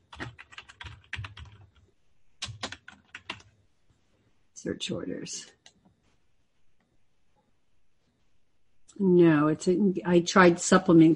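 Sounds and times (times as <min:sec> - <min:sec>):
computer keyboard typing into a search box: 0:00.0 - 0:03.6
speech: 0:04.6 - 0:05.6, 0:09.0 - 0:11.1.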